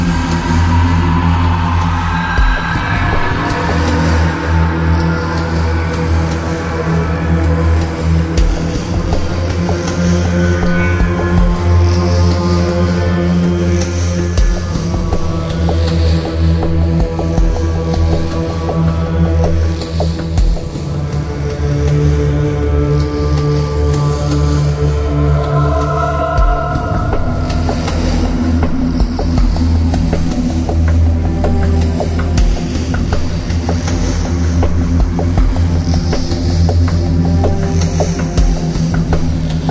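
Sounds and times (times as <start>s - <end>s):
ambience music: 0.0s - 39.7s.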